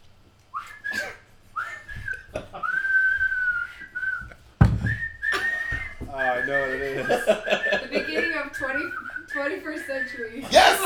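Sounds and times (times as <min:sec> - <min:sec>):
person whistling a tune: 0:00.5 - 0:10.8
laughter: 0:00.9 - 0:03.6, 0:05.2 - 0:10.8
thumps and rustles: 0:04.1 - 0:06.2.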